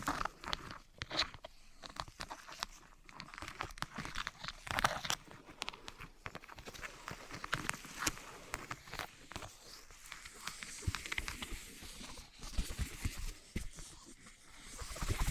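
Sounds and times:
wood, cork, sponge, foam, glass and plastic handled with taps and crackles: 0.0 - 15.3.

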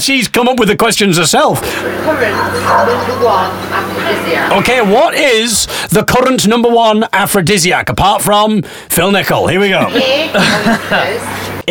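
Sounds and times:
speech: 0.0 - 11.6
laughter: 1.6 - 5.7, 9.3 - 11.6
dog barking: 2.4 - 4.0.

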